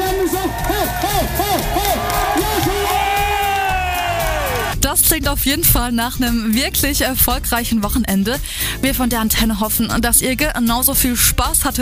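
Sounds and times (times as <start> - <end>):
live audience cheering: 0.0 - 4.8
speech: 5.1 - 11.7.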